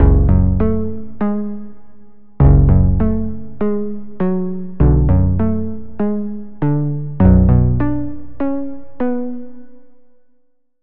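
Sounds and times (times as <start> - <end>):
Sylenth1 synth pluck: 0.0 - 1.5, 2.4 - 9.5.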